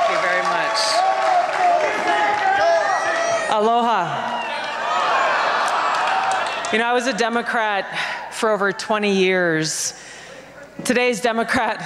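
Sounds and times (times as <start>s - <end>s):
crowd applauding at political rally: 0.0s - 3.6s, 4.2s - 8.2s
crowd shouting and whooping at political rally: 0.0s - 8.8s
speech: 6.7s - 10.1s, 10.8s - 11.8s.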